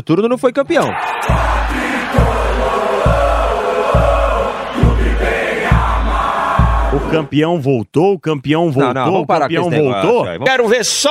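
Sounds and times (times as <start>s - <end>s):
speech: 0.0s - 1.8s, 7.1s - 11.0s
São Paulo football fans chanting at the Morumbi stadium: 0.9s - 7.3s.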